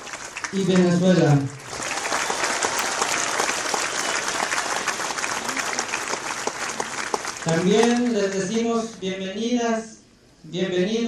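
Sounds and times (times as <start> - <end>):
audience applause: 0.0 - 8.5
speech: 0.5 - 1.7, 7.4 - 11.0.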